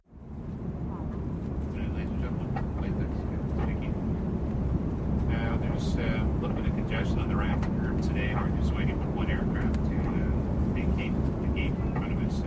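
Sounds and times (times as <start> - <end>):
airplane cabin ambience: 0.0 - 12.4.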